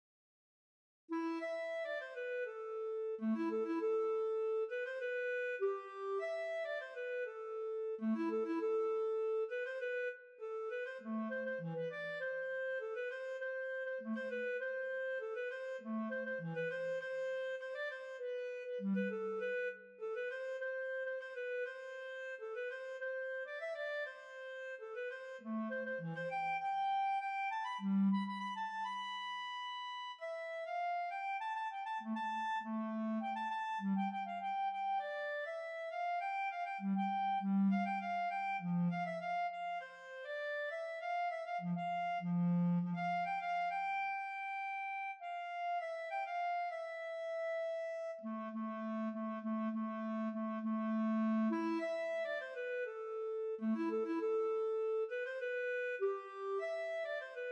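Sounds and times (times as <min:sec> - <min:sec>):
Bb clarinet: 0:01.1 - 0:57.4.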